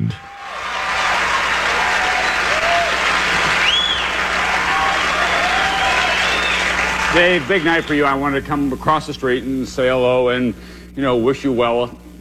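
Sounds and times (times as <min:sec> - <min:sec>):
shrill whistles: 0:00.0 - 0:08.2
TV studio audience at a late-night talk show cheering and applauding: 0:00.0 - 0:08.8
speech: 0:07.1 - 0:12.1.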